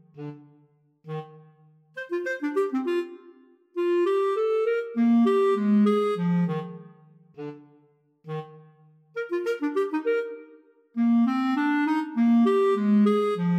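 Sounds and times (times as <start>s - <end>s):
flute and clarinet waltz duet: 2.0s - 7.7s, 9.2s - 13.5s.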